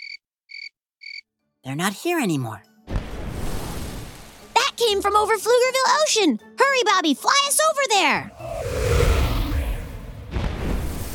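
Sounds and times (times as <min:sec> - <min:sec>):
speech: 0:01.6 - 0:03.0, 0:04.8 - 0:08.5
deep rumbling firework boom: 0:08.4 - 0:11.1.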